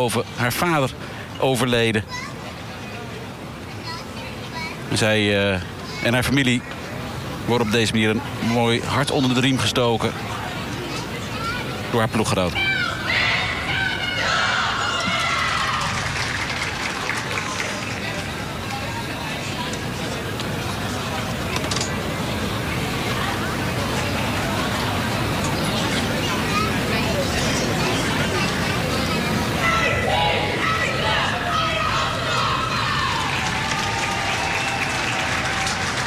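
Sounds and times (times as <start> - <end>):
speech: 0.0 - 2.4, 4.9 - 6.8, 7.5 - 10.3, 11.9 - 12.7
crowd chatter in the stands: 0.0 - 36.0
people shouting: 12.6 - 16.0, 29.6 - 35.7
bursts of clapping: 13.8 - 18.5, 31.9 - 36.0.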